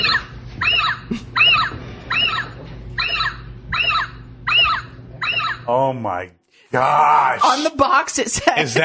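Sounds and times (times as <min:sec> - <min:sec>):
electronic owl deterrent hoot: 0:00.0 - 0:05.7
speech: 0:05.7 - 0:08.8.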